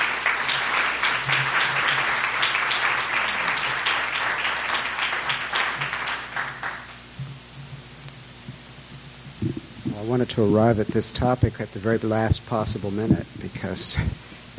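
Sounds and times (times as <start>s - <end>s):
audience applause welcoming a lecturer: 0.0s - 7.0s
speech: 10.1s - 14.2s.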